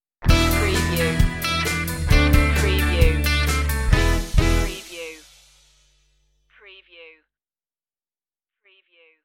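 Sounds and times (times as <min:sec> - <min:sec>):
cowboy music stinger: 0:00.3 - 0:04.8.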